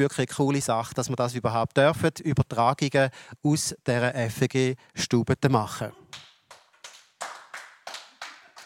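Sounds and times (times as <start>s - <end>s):
speech: 0.0s - 6.0s
a handful of people clapping slowly in unison in a studio: 6.0s - 8.6s.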